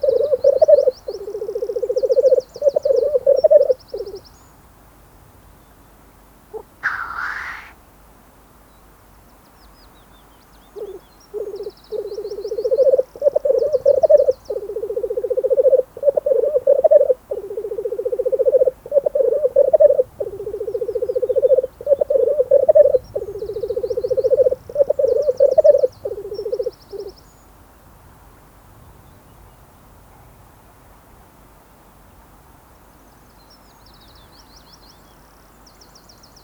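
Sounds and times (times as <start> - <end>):
black grouse calling: 0.0 - 4.2, 6.5 - 7.8, 10.7 - 27.2.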